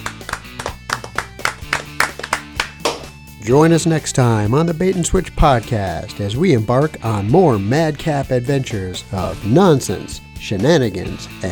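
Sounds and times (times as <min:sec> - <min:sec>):
hands clapping: 0:00.0 - 0:03.2
speech: 0:03.4 - 0:11.5.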